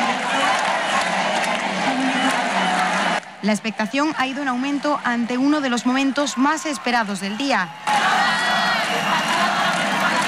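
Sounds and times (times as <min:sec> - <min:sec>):
crowd cheering: 0:00.0 - 0:10.2
speech: 0:03.4 - 0:08.1.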